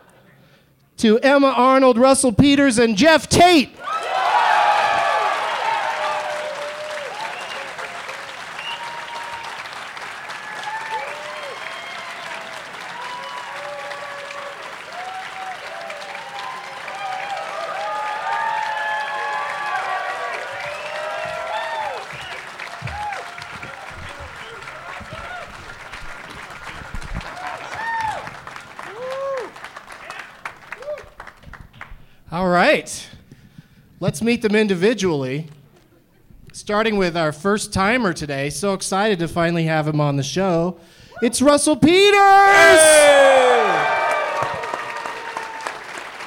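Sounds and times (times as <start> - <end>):
speech: 1.0 - 3.9, 34.1 - 35.6, 36.7 - 44.0
whoops and cheers: 3.8 - 25.5, 27.2 - 31.2, 42.0 - 46.0
studio audience applause welcoming guests: 3.8 - 31.9, 42.0 - 46.2.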